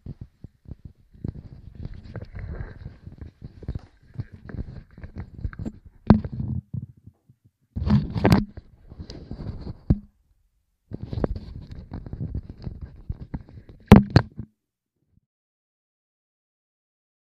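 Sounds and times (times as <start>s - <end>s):
microphone handling bumps: 0.0s - 7.2s, 7.8s - 10.2s, 10.9s - 14.4s.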